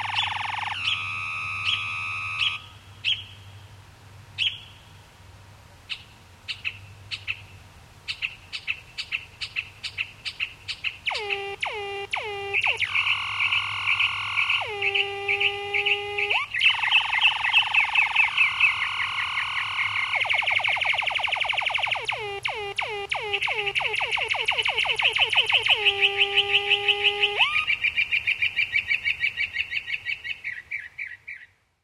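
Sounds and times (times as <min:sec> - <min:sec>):
mockingbird song with chips, whistles and trills: 0:00.0 - 0:03.3, 0:08.1 - 0:31.5
low hum: 0:11.1 - 0:27.7.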